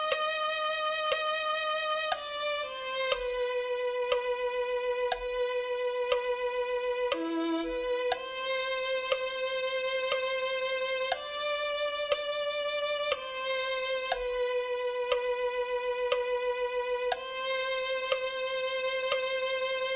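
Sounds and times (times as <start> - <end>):
violin piece: 0.0 - 19.9.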